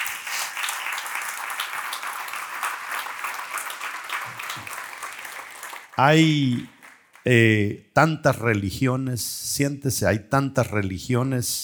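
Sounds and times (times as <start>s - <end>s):
crowd applause: 0.0s - 7.2s
speech: 6.0s - 11.6s.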